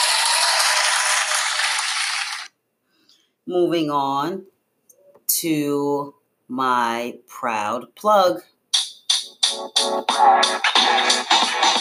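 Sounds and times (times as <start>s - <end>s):
round of applause: 0.0s - 2.5s
speech: 3.5s - 4.5s, 5.3s - 8.5s, 9.6s - 11.7s.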